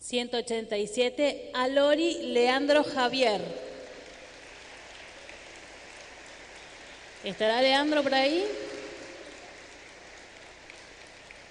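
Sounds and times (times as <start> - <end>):
speech: 0.1 - 3.6, 7.2 - 8.6
crowd clapping: 3.3 - 11.5.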